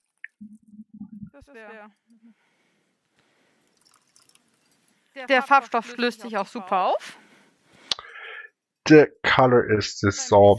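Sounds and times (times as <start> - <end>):
speech: 1.4 - 2.5, 5.2 - 7.2, 8.9 - 10.5
cold water poured into a mixing container: 3.7 - 4.7.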